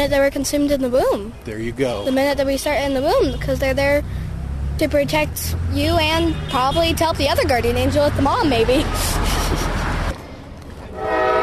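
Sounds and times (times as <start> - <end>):
speech: 0.0 - 4.2, 4.8 - 9.7
train horn: 10.9 - 11.4.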